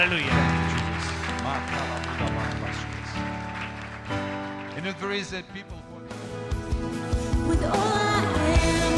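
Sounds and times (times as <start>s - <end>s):
speech: 0.0s - 0.4s, 4.8s - 6.2s, 7.5s - 8.8s
audience applauding: 0.0s - 5.4s.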